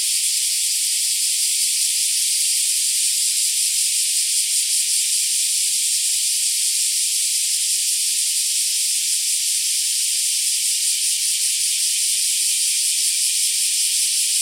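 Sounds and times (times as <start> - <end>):
black cicadas sustaining a hissing electric-sounding drone: 0.0 - 14.3.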